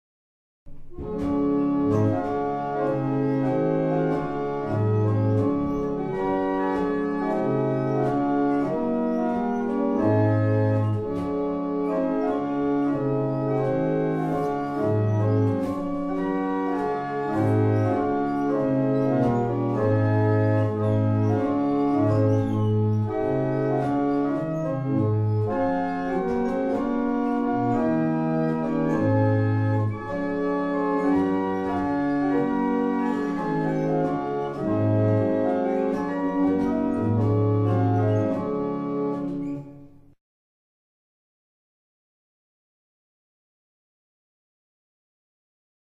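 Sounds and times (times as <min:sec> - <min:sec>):
barrel organs: 0:00.7 - 0:40.2.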